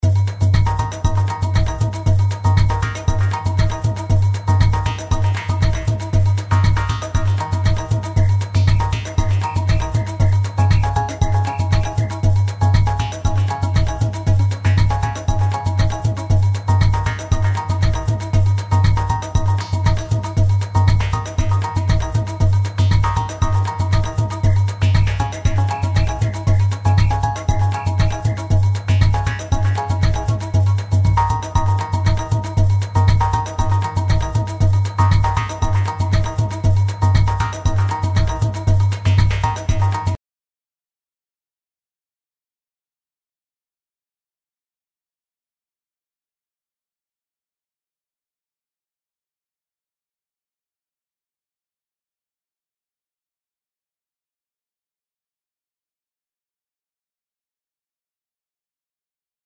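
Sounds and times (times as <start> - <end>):
electronic samba music: 0.0 - 40.2.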